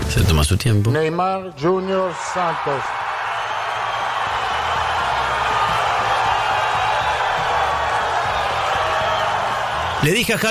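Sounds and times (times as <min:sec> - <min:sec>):
speech: 0:00.1 - 0:03.0, 0:10.0 - 0:10.4
crowd cheering: 0:01.4 - 0:10.4.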